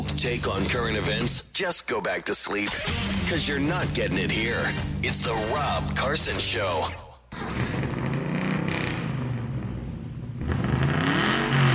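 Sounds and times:
speech: 0:00.2 - 0:07.6
car engine revving: 0:07.4 - 0:11.7.

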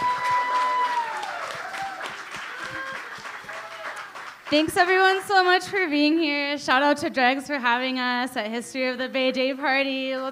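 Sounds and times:
audience applause: 0:00.0 - 0:05.2
speech: 0:04.5 - 0:10.2.

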